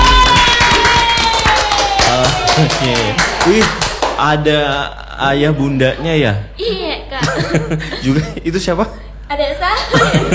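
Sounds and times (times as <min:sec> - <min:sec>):
hand clapping: 0:00.1 - 0:04.2
speech: 0:02.6 - 0:10.3
laughter: 0:07.2 - 0:08.5, 0:09.8 - 0:10.3.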